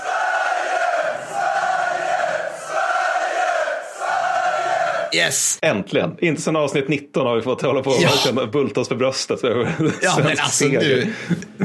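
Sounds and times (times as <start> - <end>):
stadium crowd cheering from the stands: 0.0 - 5.2
speech: 5.1 - 11.6
laughter: 9.6 - 11.6.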